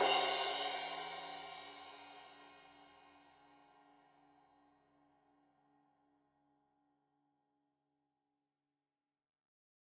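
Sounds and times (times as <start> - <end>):
15 inch crash cymbal edge hit: 0.0 - 2.2.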